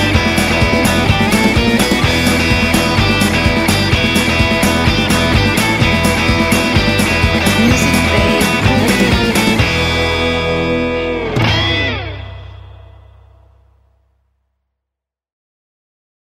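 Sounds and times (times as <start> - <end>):
surf rock music: 0.0 - 12.6.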